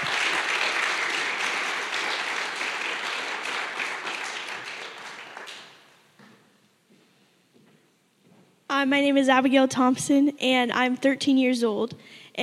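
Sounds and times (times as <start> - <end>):
audience applause: 0.0 - 5.9
speech: 8.8 - 12.4.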